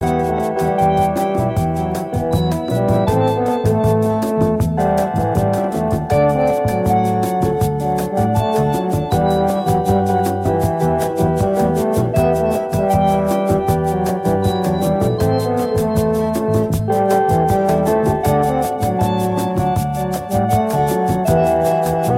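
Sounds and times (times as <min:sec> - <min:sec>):
romantic instrumental music: 0:00.0 - 0:22.1.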